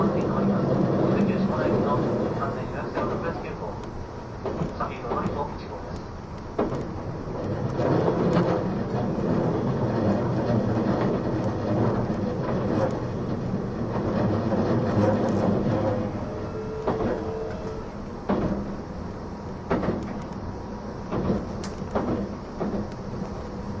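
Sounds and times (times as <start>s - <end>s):
E261 series Saphir Odoriko No. 1 train rumbling: 0.0s - 23.7s
sharp clicks and knocks: 2.9s - 16.0s, 19.6s - 20.4s, 21.1s - 23.4s.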